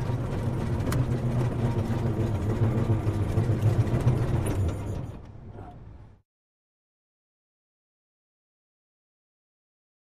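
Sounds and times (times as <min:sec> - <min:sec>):
Model T suspension rattling over bumps: 0:00.0 - 0:05.8
Model T engine starting and running slow and steady: 0:00.0 - 0:06.1.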